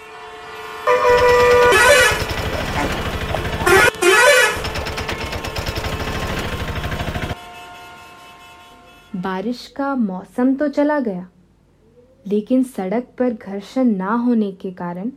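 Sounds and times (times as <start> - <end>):
car horns honking in a traffic jam: 0.6 - 5.2, 7.3 - 9.2
speech: 9.4 - 11.4, 12.2 - 15.1.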